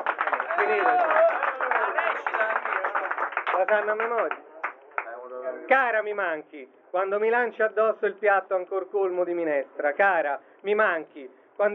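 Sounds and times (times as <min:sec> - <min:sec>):
audience applause: 0:00.0 - 0:05.1
speech: 0:00.6 - 0:02.7, 0:03.6 - 0:04.5, 0:05.6 - 0:11.7.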